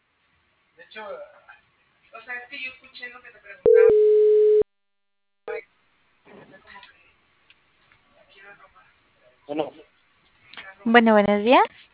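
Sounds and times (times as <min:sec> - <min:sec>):
speech: 0:00.8 - 0:01.4, 0:02.2 - 0:04.2, 0:09.5 - 0:09.9, 0:10.8 - 0:11.8
telephone busy tone as a phone call drops: 0:03.7 - 0:04.6.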